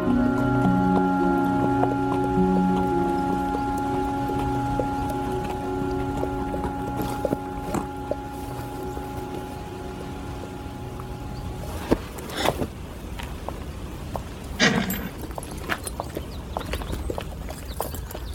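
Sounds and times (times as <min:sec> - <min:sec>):
faint steady tone: 0:00.0 - 0:12.7
ridden horse hooves walking on dirt forest road: 0:00.0 - 0:18.3.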